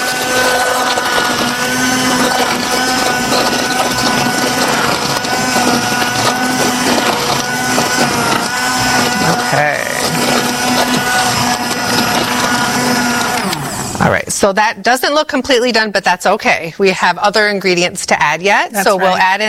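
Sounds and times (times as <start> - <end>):
blender blending a smoothie at high speed: 0.0 - 14.5, 18.8 - 19.4
speech: 14.4 - 19.4.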